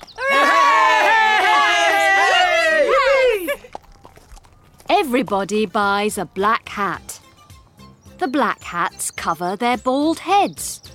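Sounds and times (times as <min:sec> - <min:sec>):
crowd cheering and shouting: 0:00.2 - 0:03.6
high-pitched whoops: 0:00.2 - 0:03.6
speech: 0:05.1 - 0:07.1, 0:08.2 - 0:10.9.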